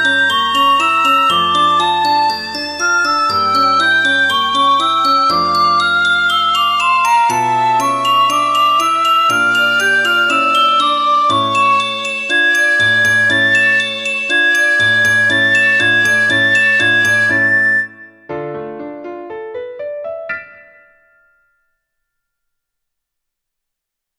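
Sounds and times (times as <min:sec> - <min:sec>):
soprano singing: 0:00.0 - 0:18.0.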